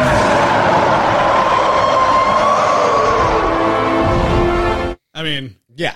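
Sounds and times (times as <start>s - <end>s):
creature roar, echoey scream: 0.0s - 4.2s
speech: 5.3s - 5.9s.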